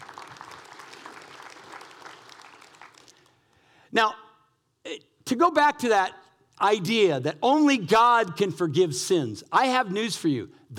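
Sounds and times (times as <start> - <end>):
audience clapping: 0.0 - 3.6
speech: 3.9 - 4.2, 4.9 - 10.7.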